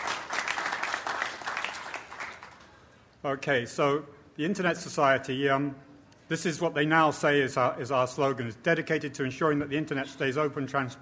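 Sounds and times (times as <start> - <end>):
crowd applause: 0.0 - 2.8
speech: 3.2 - 10.9.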